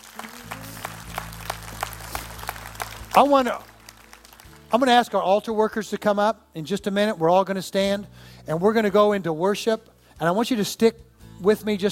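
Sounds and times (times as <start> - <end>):
audience clapping hands: 0.0 - 5.6
speech: 3.2 - 3.7, 4.7 - 11.9.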